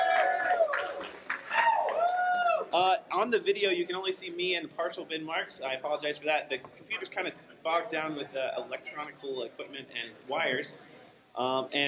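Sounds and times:
live studio audience applause: 0:00.0 - 0:02.7
speech: 0:02.8 - 0:11.8.

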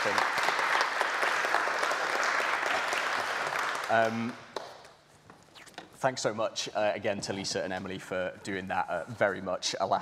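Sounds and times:
speech: 0:00.0 - 0:00.3, 0:03.9 - 0:04.4, 0:06.0 - 0:10.0
audience applause: 0:00.0 - 0:04.4.

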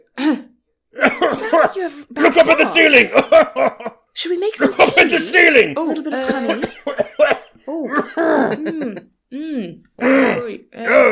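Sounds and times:
harsh throat clearing with cough-like grunts: 0:00.0 - 0:03.6, 0:06.2 - 0:08.6, 0:10.0 - 0:11.0
speech: 0:01.4 - 0:11.0
laughter: 0:02.2 - 0:04.0, 0:04.6 - 0:09.0.

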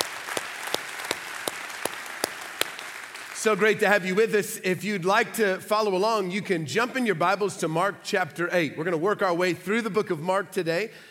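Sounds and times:
church congregation applauding at an Easter service: 0:00.0 - 0:04.4
speech: 0:03.4 - 0:11.0.

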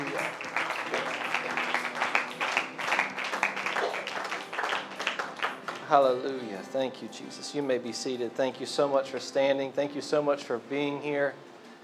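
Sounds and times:
audience clapping hands in praise: 0:00.0 - 0:06.0
speech: 0:05.9 - 0:11.5.

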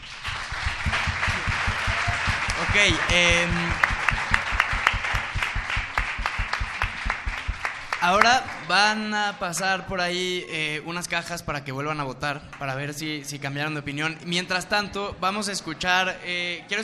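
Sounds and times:
audience applause: 0:00.0 - 0:08.8
speech: 0:02.8 - 0:03.8, 0:08.0 - 0:16.8.

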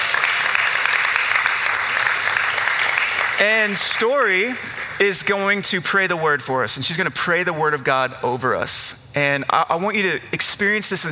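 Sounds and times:
audience applause: 0:00.0 - 0:05.6
speech: 0:03.4 - 0:11.1.

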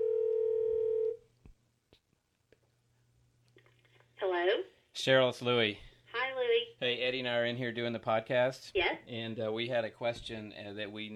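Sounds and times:
telephone dial tone: 0:00.0 - 0:01.2
speech: 0:04.5 - 0:05.9, 0:06.8 - 0:11.1.

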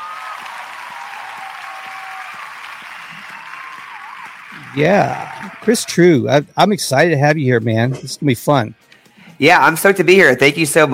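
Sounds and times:
crowd applause: 0:00.0 - 0:06.2
speech: 0:04.7 - 0:10.9.

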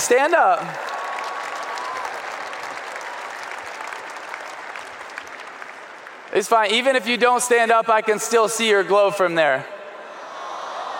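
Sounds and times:
audience applause: 0:00.0 - 0:06.4
speech: 0:00.1 - 0:00.9, 0:06.4 - 0:09.7.

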